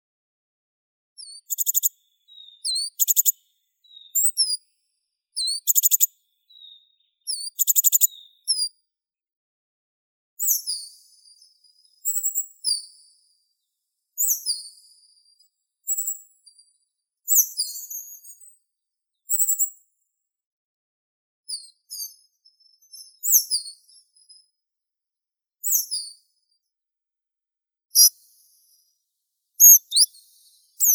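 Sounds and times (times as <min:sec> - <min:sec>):
coal tit Periparus ater calling: 0:01.2 - 0:03.3, 0:05.4 - 0:06.1, 0:07.3 - 0:08.1, 0:29.6 - 0:30.1.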